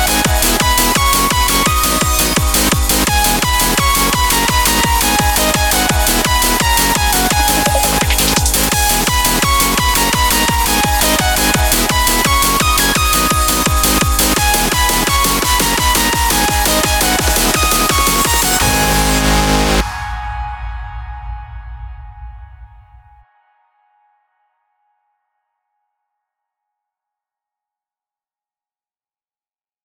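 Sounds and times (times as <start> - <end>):
hardcore techno: 0.0 - 23.2.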